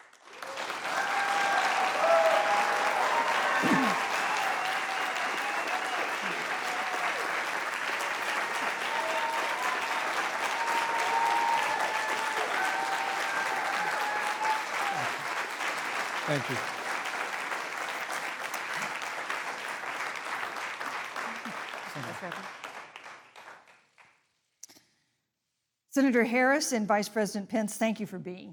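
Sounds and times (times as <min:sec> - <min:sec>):
audience applause welcoming the vice-presidential debate candidates: 0:00.0 - 0:23.8
speech: 0:16.4 - 0:16.7, 0:22.2 - 0:22.6, 0:26.0 - 0:28.5.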